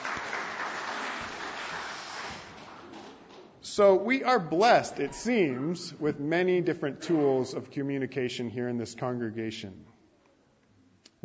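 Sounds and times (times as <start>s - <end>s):
crowd clapping: 0.0s - 3.6s
speech: 3.8s - 9.9s.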